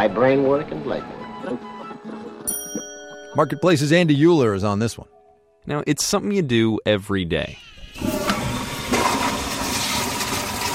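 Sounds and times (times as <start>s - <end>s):
speech: 0.0s - 2.2s, 3.4s - 8.1s
toilet flushing: 7.7s - 10.7s.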